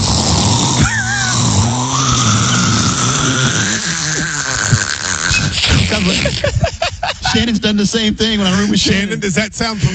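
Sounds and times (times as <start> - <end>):
voice imitating a person snoring: 0.0 - 6.7
laughter: 0.7 - 2.3, 3.1 - 9.9
speech: 7.3 - 9.9.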